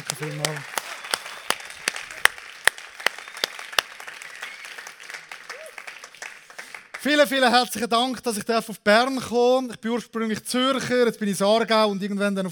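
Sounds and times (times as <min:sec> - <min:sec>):
audience applause: 0:00.0 - 0:07.3
speech: 0:00.1 - 0:00.8, 0:07.0 - 0:12.5.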